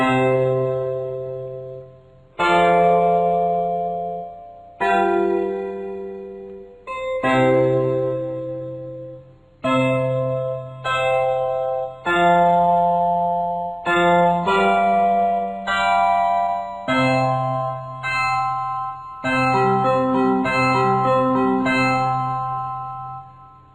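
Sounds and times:
simple chord progression in equal tempered tuning: 0.0s - 23.7s.

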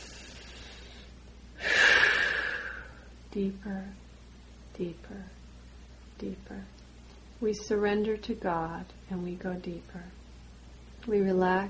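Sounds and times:
deep inhalation during a guided meditation: 0.0s - 3.1s
speech: 3.3s - 4.0s, 4.8s - 5.4s, 6.2s - 6.8s, 7.4s - 10.2s, 11.0s - 11.6s.

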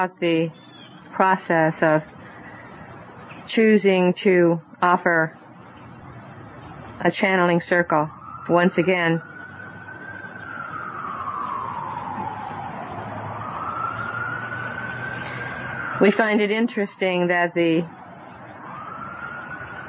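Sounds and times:
speech: 0.0s - 2.2s, 3.4s - 5.4s, 7.0s - 9.3s, 16.0s - 18.0s
emergency vehicle siren: 7.3s - 19.8s.

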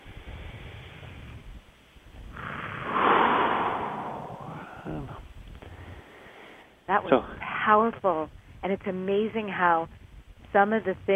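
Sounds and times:
deep breath during a guided relaxation session: 2.8s - 6.8s
speech: 6.9s - 11.1s.

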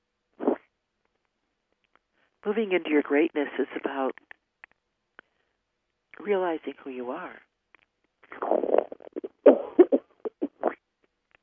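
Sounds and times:
speech: 2.4s - 4.4s, 6.2s - 7.5s
coughing fit: 8.3s - 10.8s.

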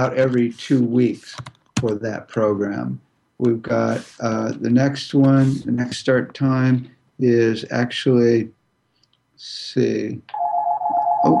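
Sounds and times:
speech: 0.0s - 8.6s, 9.4s - 10.4s
phone ringing: 10.3s - 11.3s.

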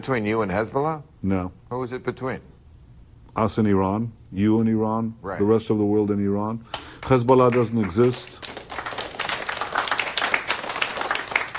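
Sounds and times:
speech: 0.0s - 2.6s, 3.4s - 8.5s
audience clapping: 6.7s - 11.5s.

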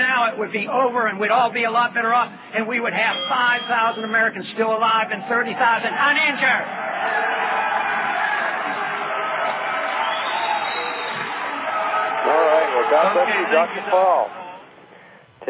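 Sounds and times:
speech: 0.2s - 7.6s, 12.9s - 14.4s
audience booing: 5.1s - 14.6s.

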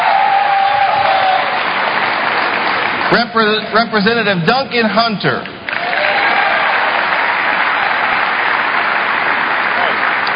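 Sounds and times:
audience applause for a candidate: 0.0s - 3.2s, 5.6s - 10.3s
speech: 3.1s - 5.6s.

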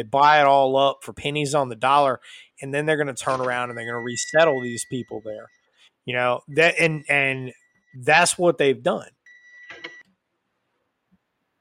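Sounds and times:
speech: 0.0s - 9.2s
microwave beep: 3.3s - 5.5s, 9.3s - 10.1s.

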